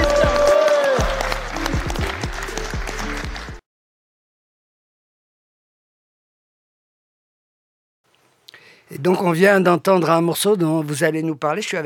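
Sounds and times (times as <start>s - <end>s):
audience applause: 0.0s - 3.6s
speech: 8.9s - 11.8s.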